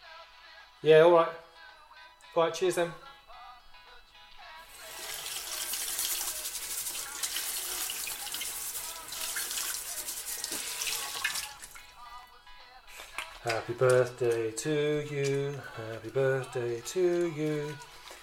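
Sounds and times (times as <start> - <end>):
speech: 0.8 - 1.4, 2.4 - 3.1, 13.4 - 17.9
water running from a tap: 4.7 - 11.9, 16.0 - 18.2.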